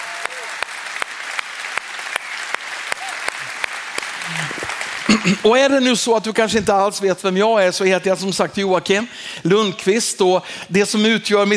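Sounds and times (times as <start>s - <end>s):
audience applause: 0.0s - 6.2s
speech: 5.1s - 11.5s.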